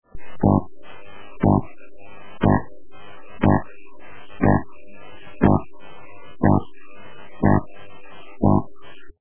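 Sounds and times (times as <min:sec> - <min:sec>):
2 MHz radio interference at home: 0:00.1 - 0:09.1.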